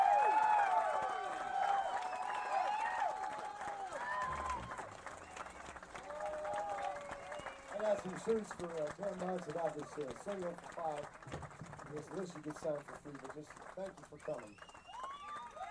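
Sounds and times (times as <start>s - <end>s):
cheers and whoops: 0.0s - 7.8s, 14.5s - 15.6s
crowd applause: 0.0s - 15.6s
speech: 7.9s - 14.8s.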